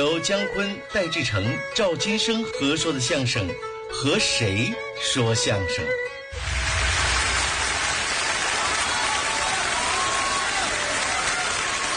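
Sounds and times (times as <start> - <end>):
speech: 0.0 - 6.5
applause from a large audience: 6.4 - 11.9.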